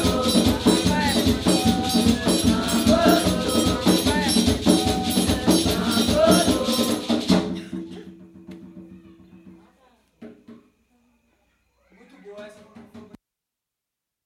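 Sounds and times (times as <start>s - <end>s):
drum: 0.0s - 10.7s.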